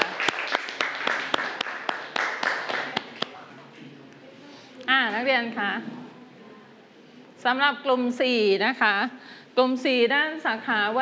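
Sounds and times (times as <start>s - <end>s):
group applauding: 0.0s - 3.4s
speech: 5.2s - 6.0s, 7.4s - 11.0s.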